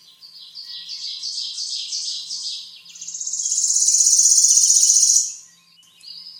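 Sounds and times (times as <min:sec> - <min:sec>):
bird chirping and trilling: 0:00.6 - 0:05.5.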